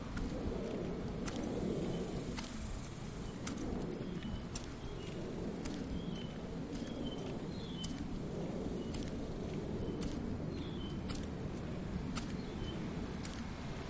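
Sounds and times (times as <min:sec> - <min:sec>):
footsteps on a neighborhood walk: 0:00.0 - 0:13.8
low traffic rumble: 0:00.0 - 0:13.8
bird chirps: 0:03.2 - 0:08.0, 0:09.8 - 0:11.3, 0:12.2 - 0:12.9.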